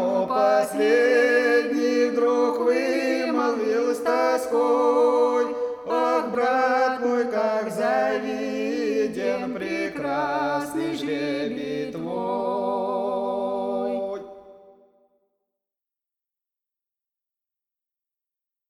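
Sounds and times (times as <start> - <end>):
spiritual verse singing from Volgograd: 0.0 - 14.9.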